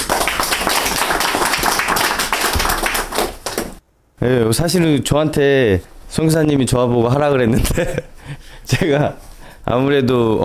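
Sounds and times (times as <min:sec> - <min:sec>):
audience clapping: 0:00.0 - 0:03.8
speech: 0:04.2 - 0:10.4.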